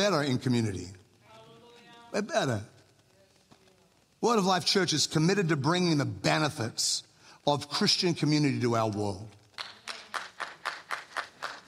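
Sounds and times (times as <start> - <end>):
speech: 0.0 - 1.0, 2.1 - 2.7, 4.2 - 9.4
audience clapping: 9.1 - 11.6.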